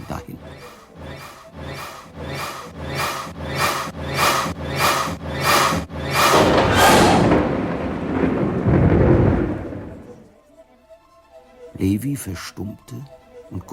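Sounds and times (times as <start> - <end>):
rhythmic gusty bursts: 0.0 - 10.3
thunder rumbling in approaching thunderstorm: 3.4 - 10.4
speech: 12.0 - 13.7.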